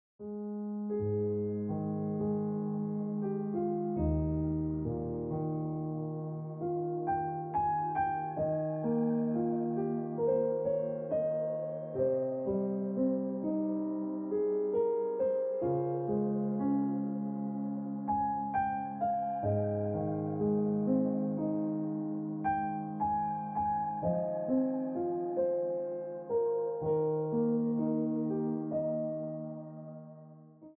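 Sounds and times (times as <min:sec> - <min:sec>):
piano ringtone music: 0:00.2 - 0:30.4.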